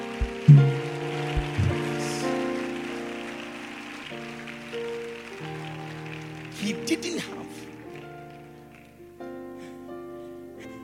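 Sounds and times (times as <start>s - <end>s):
sustained low keyboard-like tones: 0.0s - 2.2s
audience clapping: 0.0s - 9.2s
speech: 0.5s - 0.8s, 6.9s - 7.4s.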